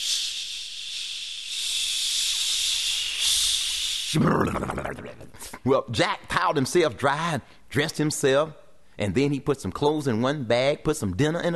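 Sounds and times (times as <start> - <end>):
voice imitating a hot shower's spray: 0.0 - 5.6
speech: 4.1 - 11.5.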